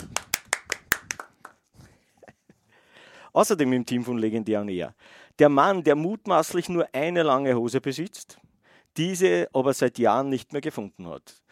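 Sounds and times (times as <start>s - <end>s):
applause: 0.0s - 1.7s
speech: 3.4s - 8.4s, 9.0s - 11.4s.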